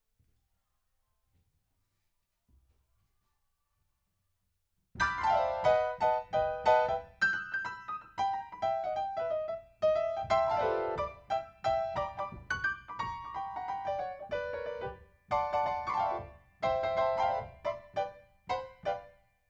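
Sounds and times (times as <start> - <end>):
piano: 5.0 - 19.4.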